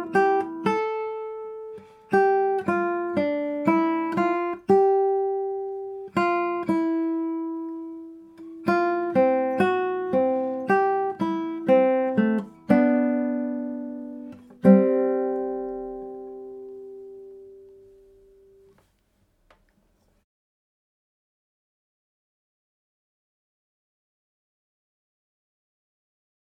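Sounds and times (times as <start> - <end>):
guitar playing: 0.0 - 18.8.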